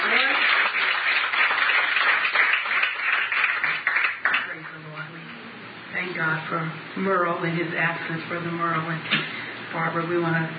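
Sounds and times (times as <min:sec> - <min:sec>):
audience clapping hands: 0:00.0 - 0:04.8
speech: 0:06.9 - 0:10.5.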